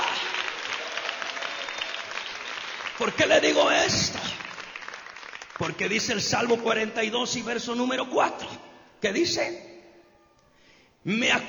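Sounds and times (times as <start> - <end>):
church congregation clapping during a worship service: 0.0 - 7.5
speech: 3.0 - 4.4, 5.6 - 9.7, 11.0 - 11.4.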